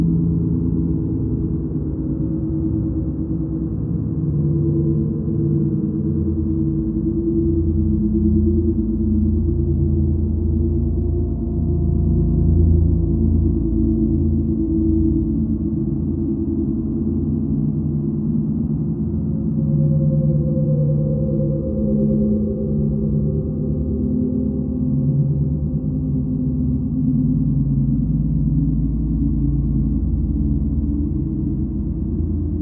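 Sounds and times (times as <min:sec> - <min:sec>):
ghostly haunting reverberant bed: 0:00.0 - 0:32.6.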